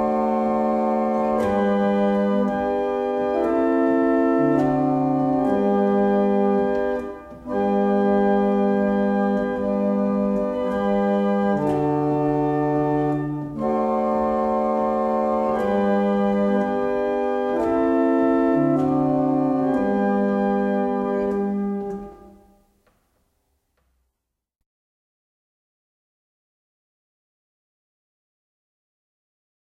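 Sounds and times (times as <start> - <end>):
barrel organ: 0.0 - 22.6.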